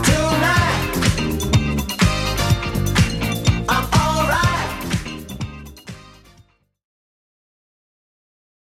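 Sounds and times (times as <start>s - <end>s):
80s-style drum beat: 0.0s - 6.0s.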